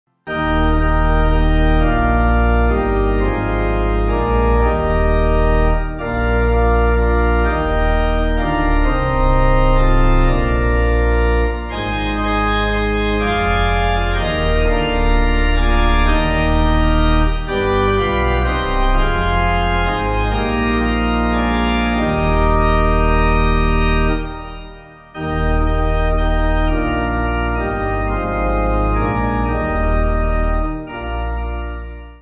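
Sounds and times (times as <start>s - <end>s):
pipe organ: 0.2s - 32.1s.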